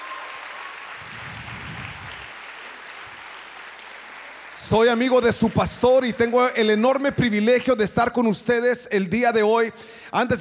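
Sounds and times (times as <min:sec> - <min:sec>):
audience applause: 0:00.0 - 0:06.0
speech: 0:04.6 - 0:10.4.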